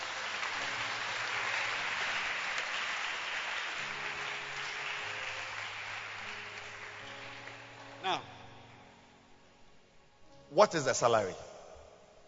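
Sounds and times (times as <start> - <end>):
audience clapping hands: 0.0 - 8.2
speech: 8.1 - 8.3, 10.6 - 11.5.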